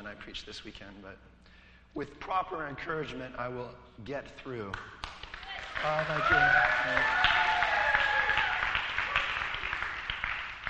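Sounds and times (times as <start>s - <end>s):
speech: 0.1s - 5.0s, 5.8s - 7.4s
crowd applauding: 5.0s - 10.6s.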